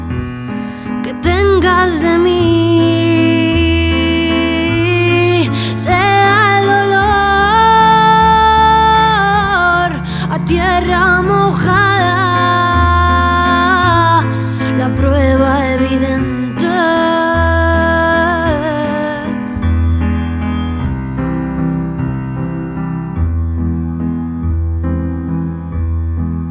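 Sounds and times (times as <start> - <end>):
piano: 0.0 - 26.4
voice: 1.1 - 19.3.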